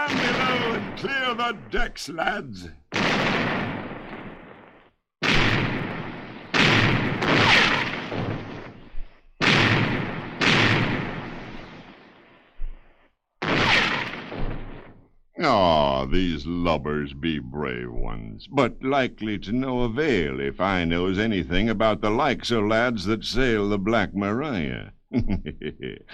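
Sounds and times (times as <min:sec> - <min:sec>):
ship's cannons firing a broadside in a naval battle: 0:00.0 - 0:15.1
speech: 0:00.1 - 0:03.6, 0:15.4 - 0:26.1
laughter: 0:25.1 - 0:26.1.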